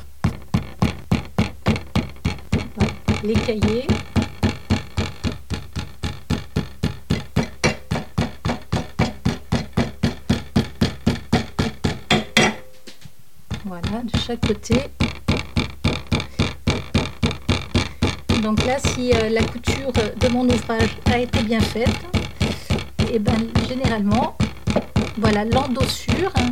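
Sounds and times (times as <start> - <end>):
hammer tapping sewn book sections held in a vise: 0.0 - 12.6, 13.5 - 26.5
speech: 3.2 - 4.1, 13.9 - 15.0, 18.4 - 26.5.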